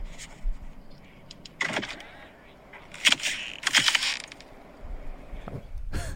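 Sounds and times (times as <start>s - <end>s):
car door handles cracking through ice: 2.9s - 4.5s.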